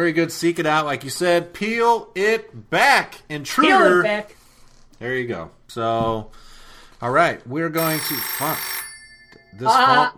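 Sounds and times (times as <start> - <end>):
speech: 0.0 - 4.4, 5.0 - 8.8, 9.5 - 10.1
phone ringing with a warbling tone: 7.8 - 10.1.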